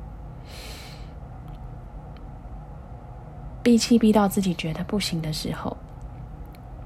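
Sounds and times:
steady low hum: 0.0 - 6.8
inhaling through the nose during a breathing exercise: 0.4 - 1.2
speech: 3.6 - 5.8.

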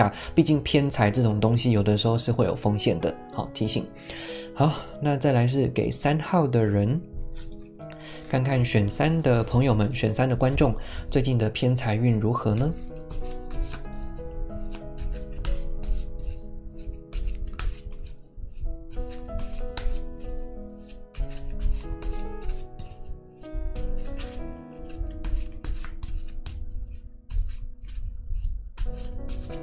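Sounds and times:
speech: 0.0 - 7.5, 8.3 - 13.4
music: 0.0 - 29.6
tarot cards being shuffled: 12.5 - 29.6.

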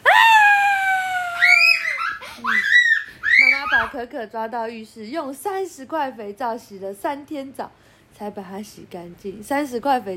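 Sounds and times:
voice imitating a woman's terrified scream: 0.0 - 4.0
speech: 3.9 - 10.1.

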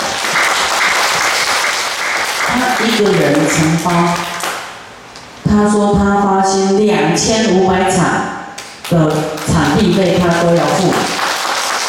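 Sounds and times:
audience applause: 0.0 - 4.6, 9.1 - 11.8
speech: 2.9 - 4.3, 5.6 - 8.3, 8.9 - 11.2.

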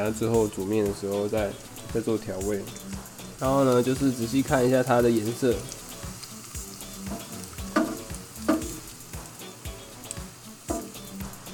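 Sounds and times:
speech: 0.0 - 5.8
shrimp frying in hot oil: 0.0 - 11.5
oil popping and spitting: 2.4 - 11.5.

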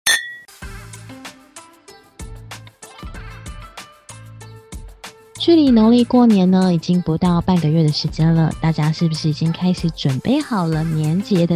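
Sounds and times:
glasses clinking in a toast: 0.0 - 0.5
speech: 5.4 - 11.5.

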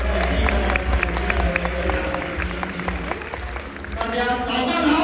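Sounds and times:
audience applause: 0.0 - 4.9.

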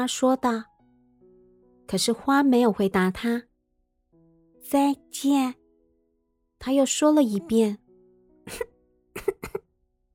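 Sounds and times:
speech: 0.0 - 0.7, 1.9 - 3.5, 4.6 - 5.6, 6.6 - 7.8, 8.5 - 9.6
coughing: 8.5 - 9.7.

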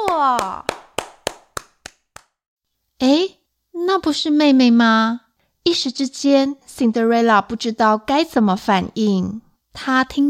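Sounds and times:
hands clapping: 0.0 - 2.4
speech: 0.2 - 0.7, 3.0 - 10.2.

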